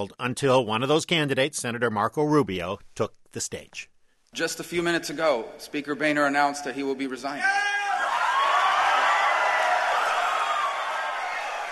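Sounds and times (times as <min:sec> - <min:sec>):
speech: 0:00.0 - 0:07.8
large crowd applauding and cheering: 0:08.0 - 0:11.6.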